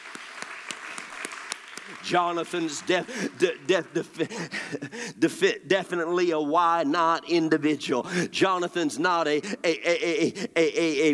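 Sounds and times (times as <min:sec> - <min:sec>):
audience clapping: 0:00.0 - 0:04.5
speech: 0:01.9 - 0:11.1.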